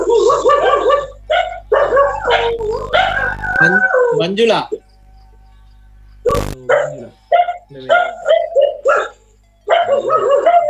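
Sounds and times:
dogs barking inside a house: 0:00.0 - 0:04.2, 0:06.7 - 0:10.6
speech: 0:03.6 - 0:04.8, 0:06.8 - 0:08.1.

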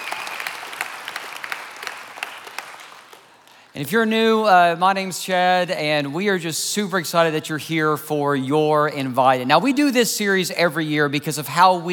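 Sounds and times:
church service audience applause welcoming online worshipers: 0:00.0 - 0:03.6
speech: 0:03.8 - 0:11.9.

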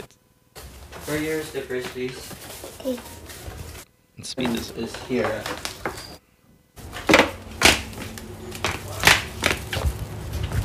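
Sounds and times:
speech: 0:01.1 - 0:03.2, 0:04.2 - 0:05.7
footsteps of someone walking down stairs: 0:04.4 - 0:06.2, 0:06.8 - 0:10.6.

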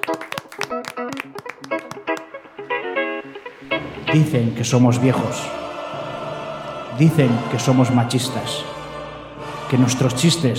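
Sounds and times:
applause: 0:00.0 - 0:02.4
speech: 0:04.1 - 0:05.6, 0:07.0 - 0:08.8, 0:09.7 - 0:10.5.

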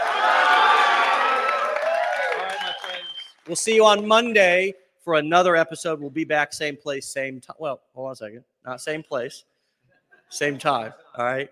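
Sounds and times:
audience cheering and applauding: 0:00.0 - 0:03.8
speech: 0:03.5 - 0:09.5, 0:10.3 - 0:11.5.

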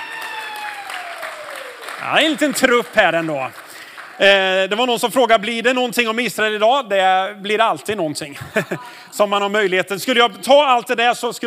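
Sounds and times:
audience applause: 0:00.0 - 0:04.8
speech: 0:02.0 - 0:03.6, 0:04.2 - 0:11.4
laughter: 0:08.3 - 0:09.0.

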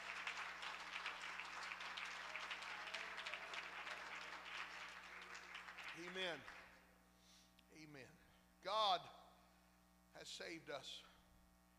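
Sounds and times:
audience clapping hands: 0:00.0 - 0:06.9
speech: 0:06.0 - 0:06.6, 0:07.8 - 0:09.2, 0:10.1 - 0:11.1.

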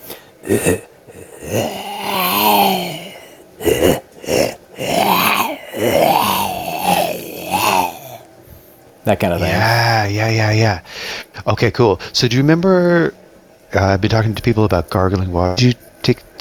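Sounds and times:
person imitating zombie with guttural vocal groans: 0:00.0 - 0:08.3, 0:09.4 - 0:10.0
speech: 0:00.5 - 0:00.9, 0:09.1 - 0:16.3.

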